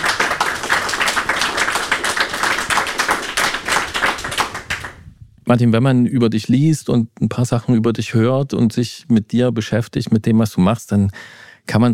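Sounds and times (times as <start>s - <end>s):
audience applause: 0.0s - 5.0s
speech: 5.5s - 11.9s.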